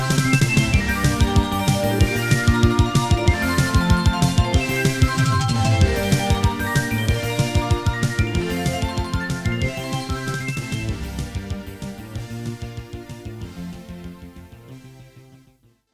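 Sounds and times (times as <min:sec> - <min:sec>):
midi stage music: 0:00.0 - 0:12.6.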